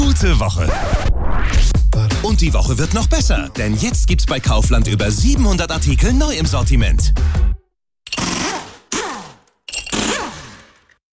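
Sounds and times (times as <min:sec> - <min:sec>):
speech: 0:00.2 - 0:07.5
car getting new winter tyres fitted: 0:08.1 - 0:11.1.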